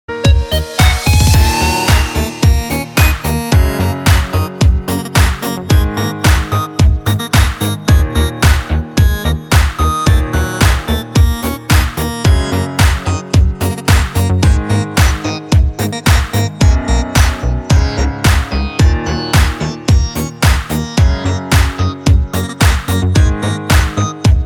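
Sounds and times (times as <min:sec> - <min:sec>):
disco background music: 0:00.1 - 0:24.4.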